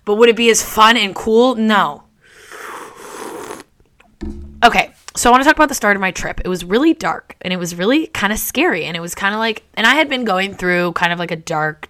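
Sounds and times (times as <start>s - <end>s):
speech: 0.1s - 2.0s, 4.6s - 11.8s
sipping tea: 2.4s - 4.2s.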